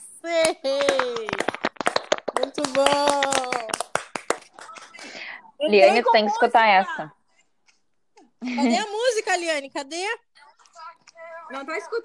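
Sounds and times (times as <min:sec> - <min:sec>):
people clapping: 0:00.3 - 0:05.2
speech: 0:02.4 - 0:03.3, 0:05.6 - 0:07.2, 0:08.4 - 0:10.3, 0:11.5 - 0:12.0.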